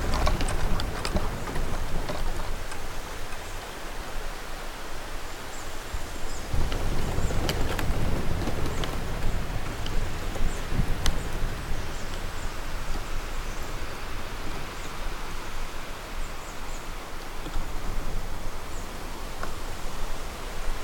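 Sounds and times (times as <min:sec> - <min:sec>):
bamboo rustling in the wind: 0:00.0 - 0:20.8.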